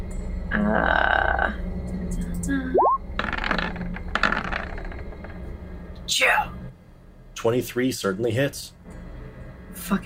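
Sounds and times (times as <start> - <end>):
speech: 0.5 - 2.8, 6.1 - 6.5, 7.4 - 8.8, 9.8 - 10.0
dice clattering across a tabletop: 3.2 - 5.5.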